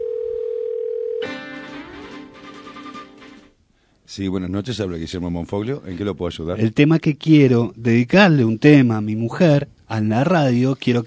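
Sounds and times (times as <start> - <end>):
telephone line tone on rotary phone: 0.0 - 1.3
speech: 4.1 - 11.0.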